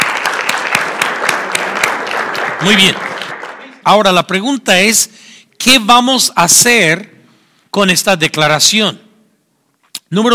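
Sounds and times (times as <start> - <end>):
congregation applause: 0.0 - 3.9
speech: 2.6 - 3.0, 3.9 - 7.1, 7.7 - 9.1, 10.1 - 10.3.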